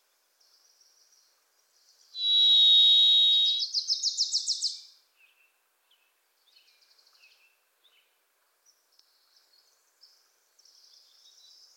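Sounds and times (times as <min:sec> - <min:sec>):
varied thrush song: 0:02.2 - 0:03.6.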